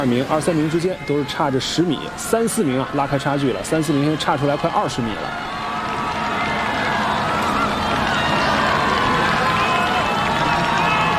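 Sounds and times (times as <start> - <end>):
speech: 0.0 - 5.6
spectators cheering in the home stands: 0.0 - 11.1.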